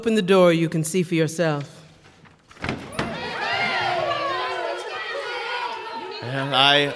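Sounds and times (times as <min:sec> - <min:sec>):
speech: 0:00.0 - 0:01.8, 0:06.2 - 0:06.9
children pouring out of schoolrooms: 0:02.1 - 0:06.9.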